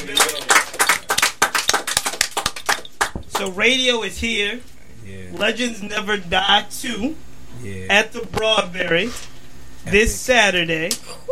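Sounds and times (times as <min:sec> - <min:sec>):
hands clapping: 0:00.0 - 0:03.6
speech: 0:03.4 - 0:11.1.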